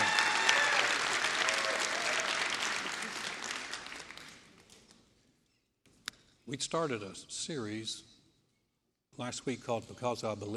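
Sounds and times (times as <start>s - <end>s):
audience applause: 0.0s - 4.4s
speech: 6.5s - 8.1s, 9.2s - 10.5s.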